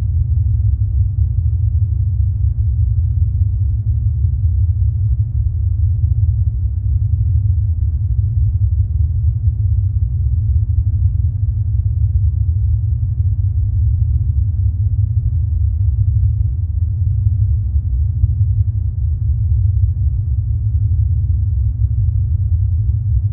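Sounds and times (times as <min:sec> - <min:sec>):
large science fiction carrier spaceship rumble: 0:00.0 - 0:23.3.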